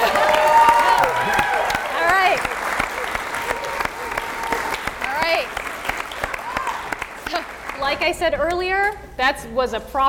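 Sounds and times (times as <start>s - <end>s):
small group cheering and whooping: 0.0s - 7.3s
small group hand claps: 0.0s - 8.6s
speech: 8.1s - 10.0s.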